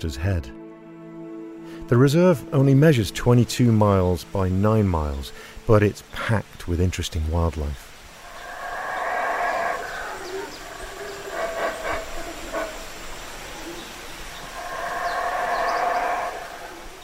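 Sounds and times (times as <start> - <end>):
speech: 0.0 - 0.6, 1.7 - 7.8
howler monkeys calling in the jungle: 8.1 - 17.0.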